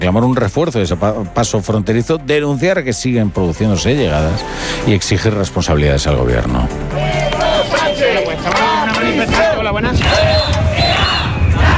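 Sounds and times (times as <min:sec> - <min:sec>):
speech: 0:00.0 - 0:10.6
protest crowd shouting: 0:06.9 - 0:11.7.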